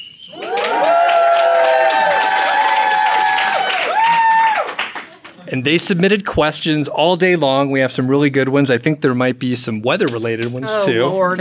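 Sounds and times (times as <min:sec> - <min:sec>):
live studio audience cheering at a camp event in the Rocky Mountains: 0:00.2 - 0:05.3
speech: 0:05.5 - 0:11.3.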